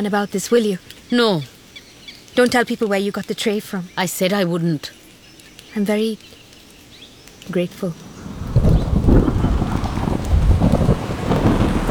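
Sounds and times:
speech: 0:00.0 - 0:01.5, 0:02.4 - 0:05.0, 0:05.7 - 0:06.4, 0:07.5 - 0:08.1
rain lashing in a hurricane: 0:00.0 - 0:11.8
hurricane wind roaring: 0:07.4 - 0:11.8.

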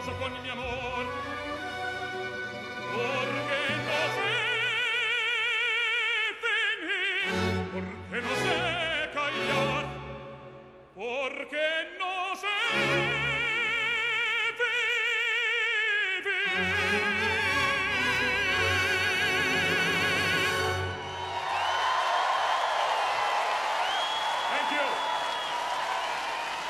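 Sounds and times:
singer holding vibrato-rich notes over an orchestra: 0:00.0 - 0:21.3
speech: 0:00.2 - 0:01.0
large concert crowd in a park cheering and applauding: 0:20.7 - 0:26.6.

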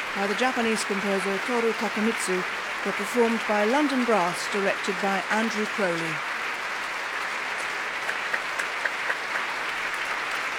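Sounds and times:
speech: 0:00.2 - 0:06.3
concert audience applause from a large audience: 0:04.8 - 0:10.5.

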